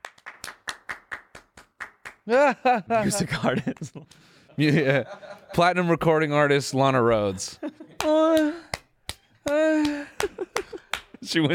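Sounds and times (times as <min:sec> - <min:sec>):
hand claps in a music track: 0:00.0 - 0:02.3, 0:08.0 - 0:11.2
laughter: 0:02.3 - 0:05.7, 0:07.6 - 0:08.7, 0:09.5 - 0:11.5
speech: 0:02.3 - 0:08.6, 0:11.3 - 0:11.5.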